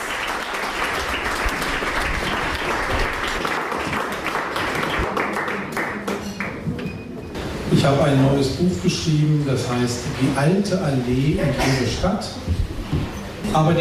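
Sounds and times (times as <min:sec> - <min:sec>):
audience applause at a literary reading with live music: 0:00.0 - 0:06.6
speech: 0:07.8 - 0:12.7, 0:13.5 - 0:13.7.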